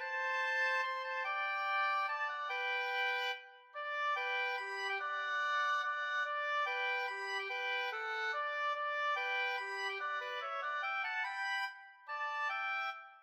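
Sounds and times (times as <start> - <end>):
oboe duet: 0.1 - 13.0.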